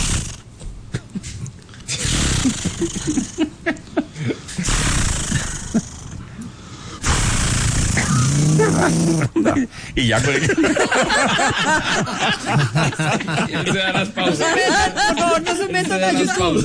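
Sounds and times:
man's voice imitating a chainsaw starting: 0:00.0 - 0:00.4, 0:01.9 - 0:03.5, 0:04.6 - 0:06.2, 0:07.0 - 0:09.4
laughter: 0:00.9 - 0:04.6, 0:08.5 - 0:16.6
speech: 0:02.8 - 0:03.8, 0:08.7 - 0:16.6.

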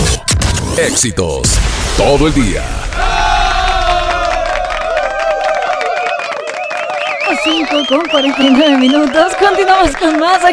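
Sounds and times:
speech: 0:00.8 - 0:02.8, 0:07.4 - 0:10.5
crowd applause and cheering: 0:02.4 - 0:10.5.

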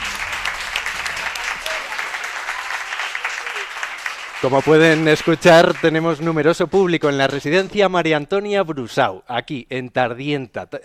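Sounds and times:
audience applause: 0:00.0 - 0:07.2
speech: 0:04.4 - 0:10.8.

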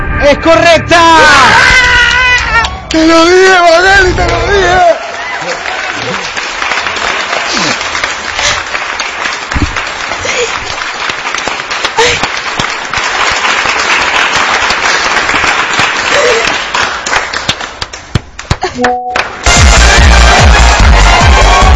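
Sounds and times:
shouts and voices: 0:00.2 - 0:06.1
speech: 0:02.9 - 0:04.9
audience applause: 0:04.1 - 0:21.7.

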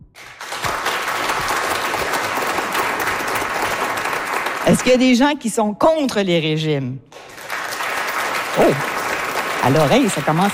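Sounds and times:
audience applause: 0:00.2 - 0:05.1, 0:07.1 - 0:10.5
speech: 0:04.7 - 0:07.2, 0:08.6 - 0:08.9, 0:09.6 - 0:10.5.

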